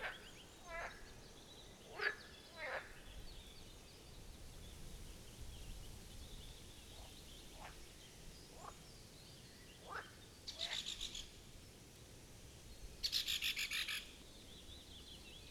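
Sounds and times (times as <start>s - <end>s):
other frogs croaking faintly: 0.0s - 1.1s, 1.9s - 3.0s, 9.8s - 11.1s
steady background noise: 0.0s - 15.5s.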